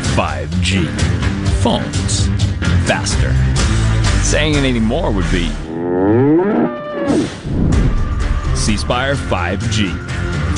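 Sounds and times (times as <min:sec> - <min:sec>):
speech: 0:00.2 - 0:07.8, 0:08.6 - 0:10.5
bull mooing: 0:05.6 - 0:07.4.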